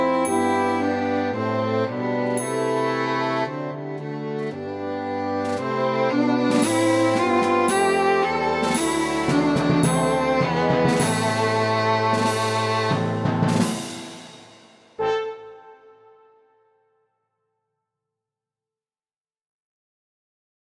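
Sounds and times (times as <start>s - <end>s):
violin melody: 0.0s - 14.0s.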